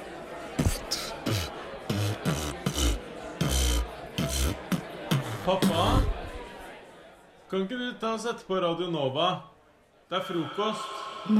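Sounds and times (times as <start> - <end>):
beatboxing: 0.6 - 6.3
speech: 5.5 - 6.2, 7.5 - 9.5, 10.1 - 11.3.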